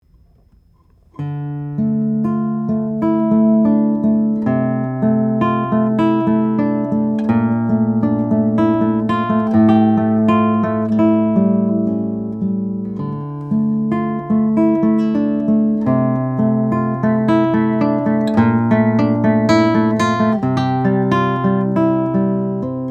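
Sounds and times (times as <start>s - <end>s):
Goodall RXC guitar: 0.0s - 22.8s.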